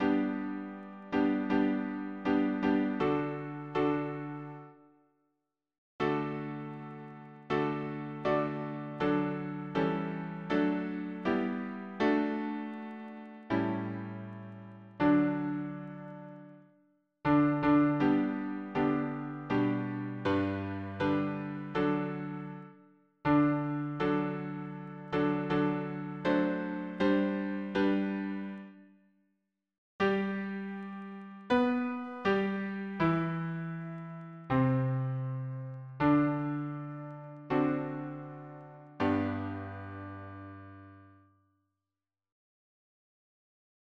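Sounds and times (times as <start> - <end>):
piano harmony: 0.0 - 4.8, 6.0 - 16.7, 17.3 - 28.8, 30.0 - 41.2.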